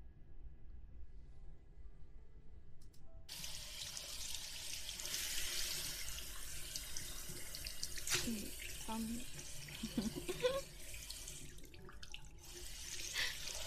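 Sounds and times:
faucet water rinsing a man's hair during a Chinese-style hair wash: 3.3 - 13.6
speech: 8.9 - 10.1.

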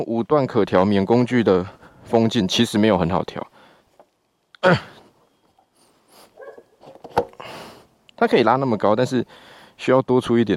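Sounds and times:
speech: 0.0 - 3.5, 4.6 - 4.9, 8.2 - 10.5
dog barking: 6.4 - 6.8.

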